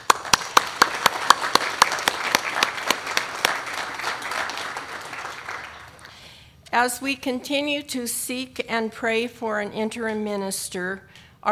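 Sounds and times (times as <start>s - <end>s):
applause welcoming a minister at a church service: 0.0s - 6.2s
speech: 6.8s - 11.5s.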